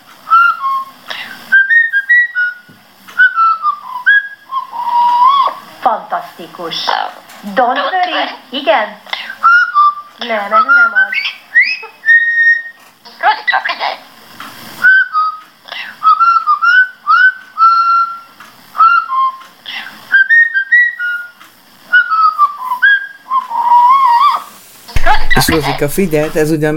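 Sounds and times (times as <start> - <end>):
parrot whistling a tune: 0.2 - 5.7, 9.2 - 12.8, 14.8 - 25.8
speech: 6.0 - 9.0, 10.2 - 10.8, 25.4 - 26.7
parrot squawking: 6.6 - 8.4, 9.2 - 14.0, 23.5 - 26.3.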